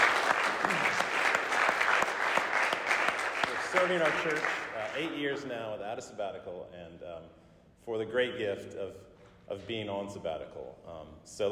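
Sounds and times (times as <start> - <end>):
church congregation applause thanking a staff member at a meeting: 0.0 - 5.4
speech: 3.9 - 11.5.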